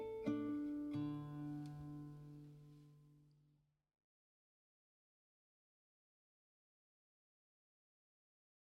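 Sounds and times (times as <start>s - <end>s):
instrumental music: 0.0s - 3.3s.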